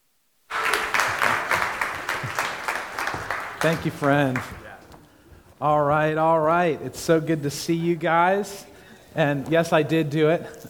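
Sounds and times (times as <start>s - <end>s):
church service audience applause for a pastor: 0.5s - 5.0s
speech: 3.6s - 4.6s, 5.6s - 10.6s.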